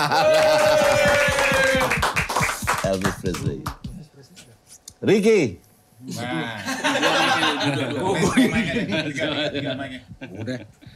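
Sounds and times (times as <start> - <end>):
speech: 0.0 - 0.6, 5.0 - 10.8
laughter: 0.0 - 1.7, 6.6 - 10.8
applause, hands clapping: 0.2 - 4.0.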